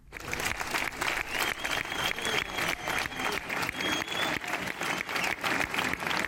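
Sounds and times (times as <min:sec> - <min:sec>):
audience applause at a tribute: 0:00.0 - 0:06.2
faint crowd murmur: 0:00.2 - 0:06.2.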